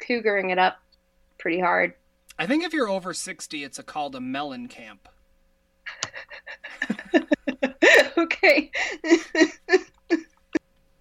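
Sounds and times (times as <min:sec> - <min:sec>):
speech: 0:00.1 - 0:00.8, 0:01.4 - 0:05.2, 0:06.2 - 0:10.2
laughter: 0:02.4 - 0:03.7, 0:05.9 - 0:09.8
person coughing after laughing hard: 0:07.8 - 0:09.7.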